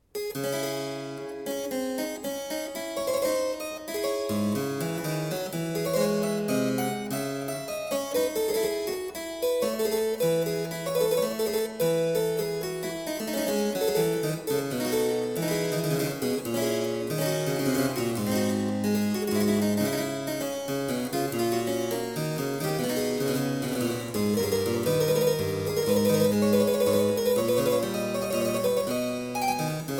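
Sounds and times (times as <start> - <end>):
harpsichord: 0.2 - 29.9.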